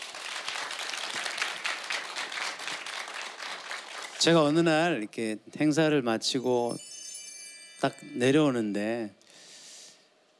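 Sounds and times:
crowd applause: 0:00.0 - 0:04.2
speech: 0:04.2 - 0:06.9, 0:07.8 - 0:09.2.

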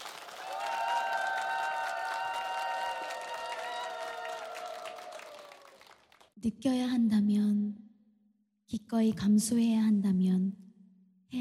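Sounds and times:
audience applause: 0:00.0 - 0:06.3
speech: 0:06.4 - 0:07.8, 0:08.7 - 0:10.6.

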